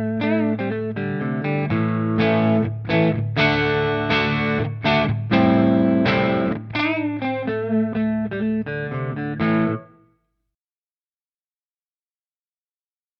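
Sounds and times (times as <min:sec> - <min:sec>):
Epiphone Prophecy Les Paul electric guitar clean tone on both pickups: 0:00.0 - 0:10.1.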